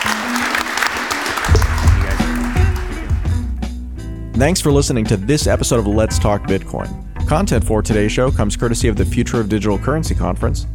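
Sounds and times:
audience applause for a panel: 0:00.0 - 0:03.4
speech: 0:04.4 - 0:10.7.

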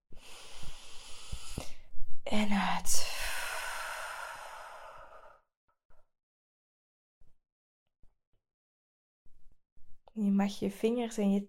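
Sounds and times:
deep inhalation: 0:00.1 - 0:01.8, 0:03.0 - 0:05.4
speech: 0:02.3 - 0:03.1, 0:10.4 - 0:11.4.

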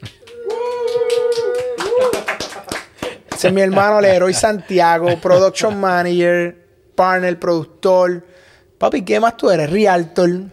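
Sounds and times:
studio audience applause: 0:00.0 - 0:04.4
laughter: 0:00.4 - 0:06.0
speech: 0:03.4 - 0:10.5.

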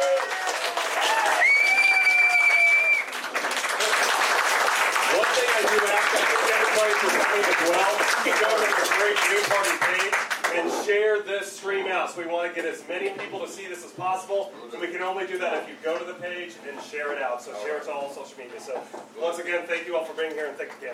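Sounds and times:
audience applause: 0:00.0 - 0:10.6
speech: 0:07.4 - 0:20.9.

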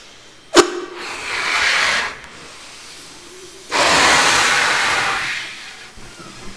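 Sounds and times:
air blown into a latex balloon: 0:00.6 - 0:02.7, 0:03.7 - 0:06.5.

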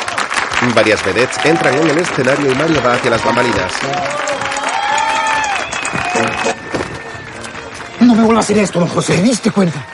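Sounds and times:
crowd cheering: 0:00.0 - 0:09.9
theater audience applause: 0:00.0 - 0:09.9
speech: 0:00.6 - 0:04.3, 0:08.0 - 0:09.9
whistles: 0:05.2 - 0:08.1.

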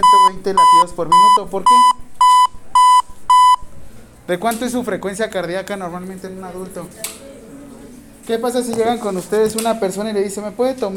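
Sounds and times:
electronic metronome beeps: 0:00.0 - 0:03.7
speech: 0:00.3 - 0:02.0, 0:04.3 - 0:07.2, 0:08.3 - 0:10.9.

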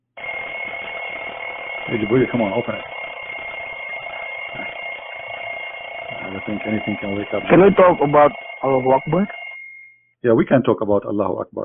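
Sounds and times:
bell ringing: 0:00.8 - 0:10.1
speech: 0:01.9 - 0:03.0, 0:06.4 - 0:09.4, 0:10.2 - 0:11.6.

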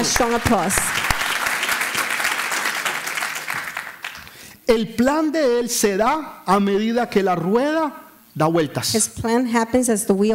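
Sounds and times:
speech: 0:00.0 - 0:01.0, 0:04.7 - 0:10.3
audience applause: 0:00.0 - 0:04.4.

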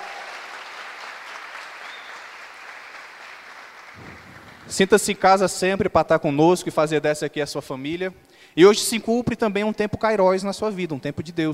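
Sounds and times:
applause: 0:00.0 - 0:05.2
speech: 0:04.0 - 0:11.5.

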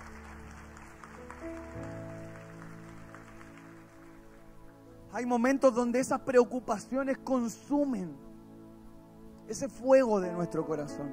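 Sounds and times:
audience applause: 0:00.0 - 0:04.6
sustained keyboard chords: 0:00.0 - 0:11.1
speech: 0:05.2 - 0:08.3, 0:09.5 - 0:11.1.

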